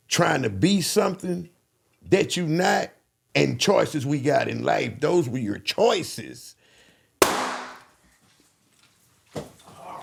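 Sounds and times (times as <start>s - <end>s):
speech: 0.2s - 6.6s
gunshots on a street: 7.2s - 7.8s.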